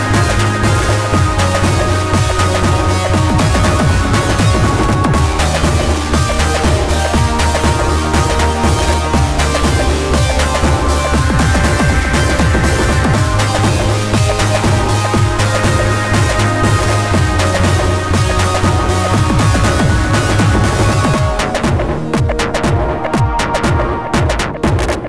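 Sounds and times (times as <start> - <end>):
sci-fi sound loop: 0.0 - 25.0.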